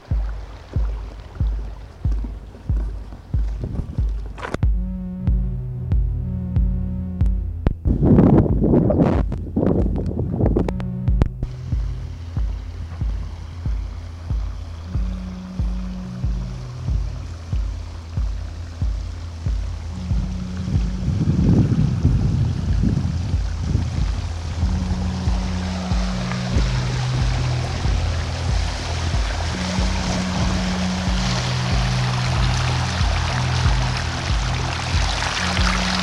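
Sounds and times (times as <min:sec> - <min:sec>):
music beat: 0:00.0 - 0:36.0.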